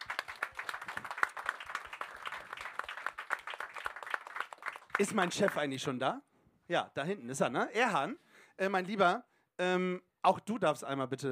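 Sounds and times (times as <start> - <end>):
audience applause: 0.0 - 5.7
speech: 5.0 - 11.2.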